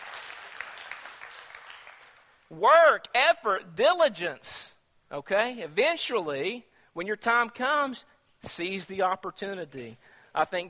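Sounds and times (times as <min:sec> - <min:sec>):
audience clapping: 0:00.0 - 0:02.5
speech: 0:02.5 - 0:10.6.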